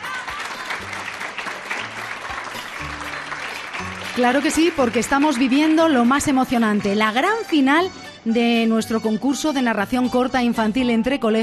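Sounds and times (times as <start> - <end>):
audience applause: 0.0 - 6.4
speech: 4.2 - 11.4.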